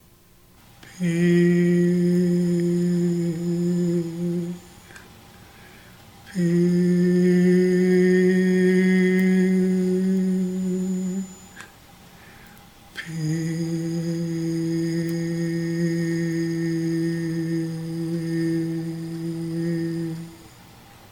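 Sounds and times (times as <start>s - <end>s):
peace chant: 0.8s - 5.0s, 6.2s - 11.7s, 12.9s - 20.6s.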